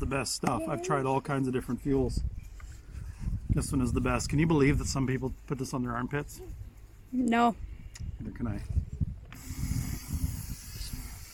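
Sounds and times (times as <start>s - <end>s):
speech: 0.0s - 2.4s, 3.6s - 9.7s
aerosol deodorant spray hissing: 9.4s - 11.3s.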